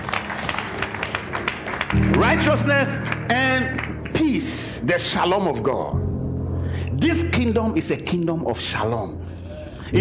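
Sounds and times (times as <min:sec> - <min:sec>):
audience clapping hands: 0:00.0 - 0:05.2
speech: 0:01.9 - 0:06.0, 0:07.0 - 0:09.2.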